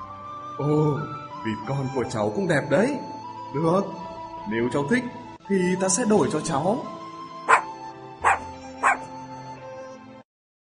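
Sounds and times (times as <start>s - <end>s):
speech: 0.6s - 7.0s
puppy yipping: 7.5s - 9.1s.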